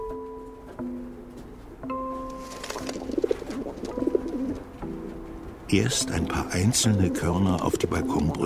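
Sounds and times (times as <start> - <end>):
pigeons cooing in low throaty bursts: 2.5 - 4.8, 6.5 - 8.4
speech: 5.7 - 8.4.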